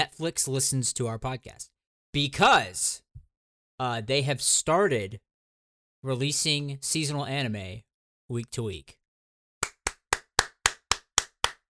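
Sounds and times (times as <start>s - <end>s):
speech: 0.0s - 3.0s, 3.8s - 5.3s, 6.0s - 9.0s
sharp clapping: 9.6s - 11.6s.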